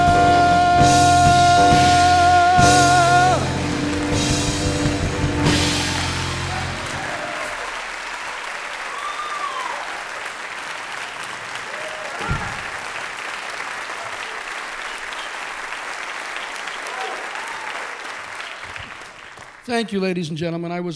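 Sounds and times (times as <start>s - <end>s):
audience applause: 0.0s - 19.7s
whistles and cheers: 5.4s - 19.6s
speech: 19.8s - 20.9s.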